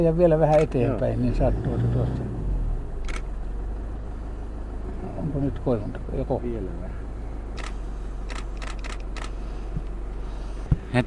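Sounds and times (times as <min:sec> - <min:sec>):
speech: 0:00.0 - 0:02.3, 0:05.2 - 0:07.0
camera shutter clicks from a photo taken from a car: 0:03.0 - 0:03.3, 0:07.6 - 0:09.4.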